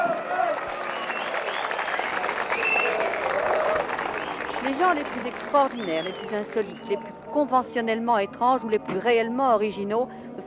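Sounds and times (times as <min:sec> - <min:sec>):
audience applause: 0:00.0 - 0:07.1
speech: 0:04.7 - 0:10.4.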